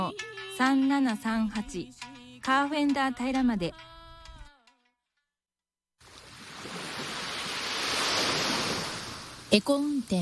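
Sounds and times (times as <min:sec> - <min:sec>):
speech: 0:00.1 - 0:03.9, 0:09.5 - 0:10.2
ocean waves breaking on a shore: 0:06.0 - 0:10.2.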